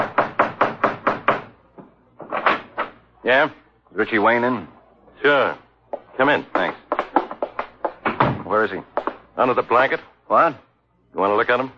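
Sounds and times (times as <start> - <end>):
knocking on a door: 0.0 - 1.5, 5.9 - 9.2
speech: 3.2 - 5.6, 6.2 - 6.8, 8.5 - 11.7.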